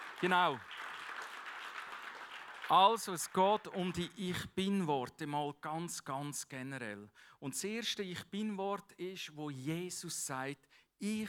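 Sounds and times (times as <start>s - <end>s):
audience applause: 0.0s - 4.0s
speech: 0.2s - 0.7s, 2.7s - 11.2s.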